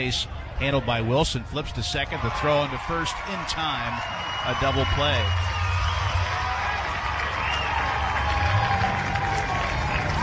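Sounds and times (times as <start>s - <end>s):
speech: 0.0s - 5.6s
baseball stadium crowd cheering and applauding: 0.0s - 10.2s
faint whistles from a baseball stadium crowd: 4.0s - 6.5s, 7.3s - 7.9s.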